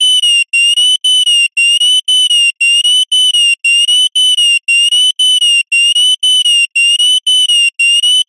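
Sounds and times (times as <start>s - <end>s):
science fiction console alarm beeps: 0.0s - 8.2s.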